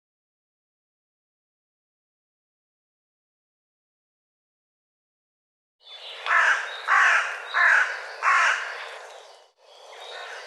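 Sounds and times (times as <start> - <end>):
bird harsh rasping calls: 5.9 - 9.1.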